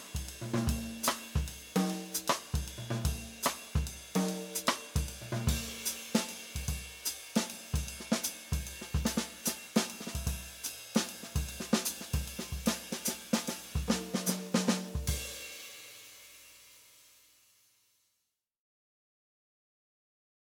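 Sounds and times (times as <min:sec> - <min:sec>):
bop drumming in 3-4 waltz time: 0:00.0 - 0:15.4.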